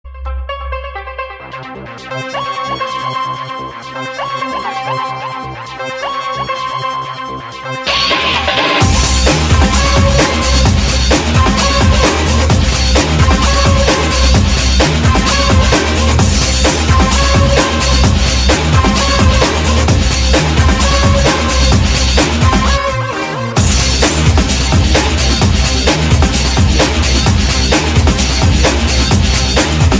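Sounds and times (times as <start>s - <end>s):
Goa breakbeat music: 0.1s - 29.9s.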